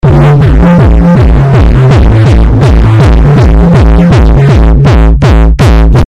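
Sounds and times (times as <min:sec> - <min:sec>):
German disco house music: 0:00.0 - 0:06.0.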